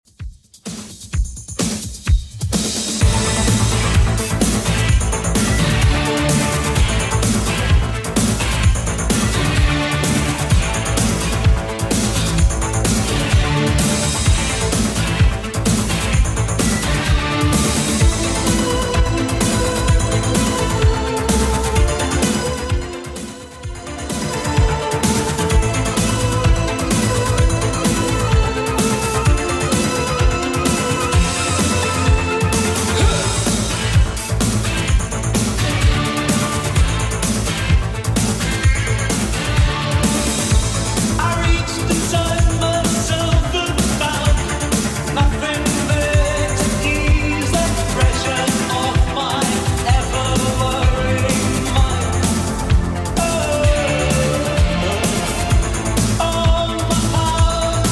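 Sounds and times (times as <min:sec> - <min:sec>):
80s Redrum drum machine beat: 0:00.0 - 0:57.9.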